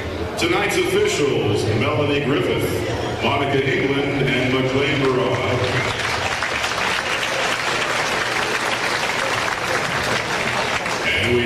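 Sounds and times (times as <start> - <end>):
speech: 0.4 - 6.0
audience applause: 4.4 - 11.4.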